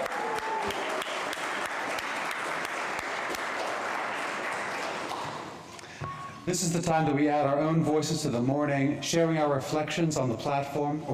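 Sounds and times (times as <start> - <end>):
audience applause: 0.0 - 5.6
speech: 6.5 - 11.1.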